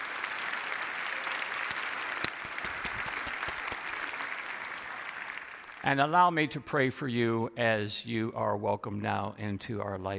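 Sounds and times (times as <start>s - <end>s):
audience applause: 0.0s - 5.9s
speech: 5.8s - 10.1s.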